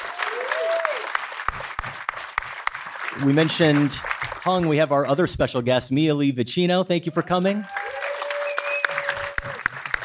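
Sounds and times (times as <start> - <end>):
audience round of applause: 0.0 - 4.8, 7.4 - 10.0
speech: 3.2 - 7.8.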